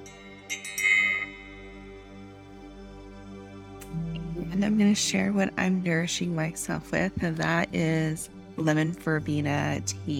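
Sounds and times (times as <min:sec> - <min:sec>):
bell ringing: 0:00.0 - 0:02.2
speech: 0:04.4 - 0:10.1.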